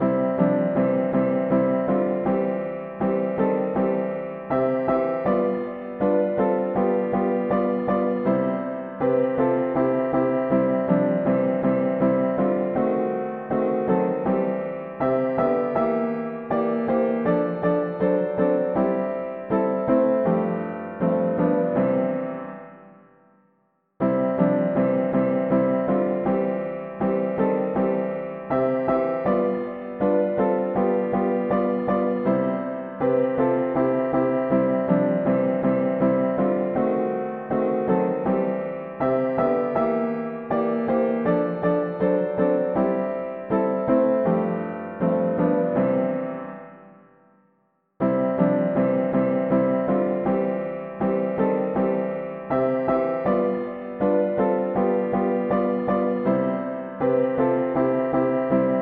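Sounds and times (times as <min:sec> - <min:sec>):
mono piano: 0:00.0 - 0:58.8.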